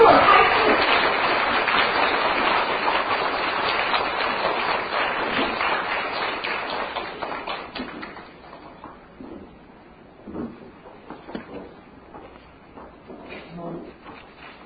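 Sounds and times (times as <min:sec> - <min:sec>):
audience applause: 0:00.0 - 0:08.7.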